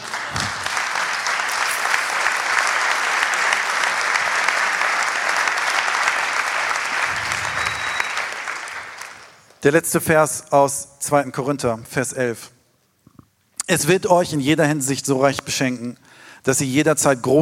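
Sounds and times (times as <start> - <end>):
audience applause: 0.0 - 9.6
speech: 9.6 - 12.6, 13.7 - 17.4.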